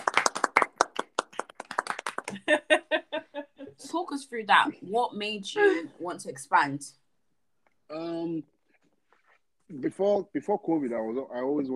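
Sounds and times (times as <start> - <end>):
few people clapping in a round of applause: 0.0 - 2.9
speech: 2.3 - 2.8, 3.8 - 7.0, 7.9 - 8.5, 9.7 - 11.7.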